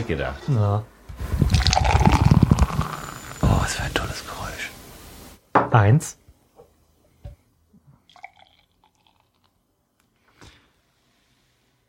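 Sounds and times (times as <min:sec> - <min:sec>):
speech: 0:00.0 - 0:01.7, 0:03.7 - 0:04.8, 0:05.7 - 0:06.2
drink pouring from a blue 0.75 litre can into glasses: 0:01.4 - 0:03.5, 0:08.1 - 0:09.6.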